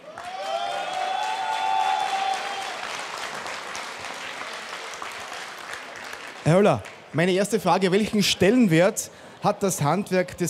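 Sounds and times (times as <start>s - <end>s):
audience applause: 0.0s - 7.2s
speech: 6.5s - 10.4s.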